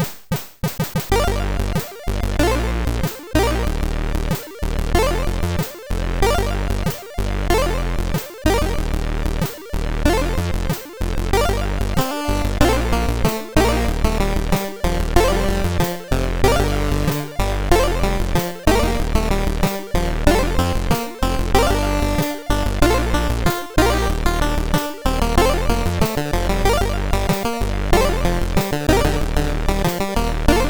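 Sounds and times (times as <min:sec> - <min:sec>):
relaxing MOS6581R3 SID chiptune music: 0:01.1 - 0:30.6.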